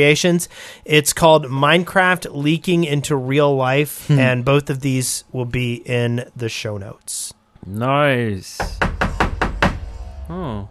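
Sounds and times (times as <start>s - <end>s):
speech: 0.0s - 8.9s, 10.3s - 10.6s
person making a brief voiced sound: 4.1s - 4.4s
heavy powerful knocks on a door: 8.6s - 9.9s.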